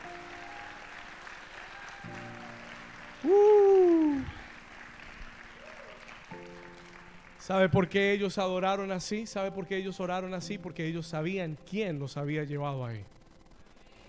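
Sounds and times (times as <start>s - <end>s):
audience applauding: 0.0s - 9.0s
speech: 3.2s - 3.5s, 7.5s - 13.2s.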